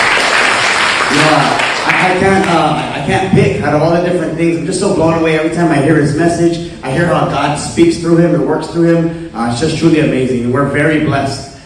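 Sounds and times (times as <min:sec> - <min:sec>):
audience applause: 0:00.0 - 0:03.0
speech: 0:01.4 - 0:11.5.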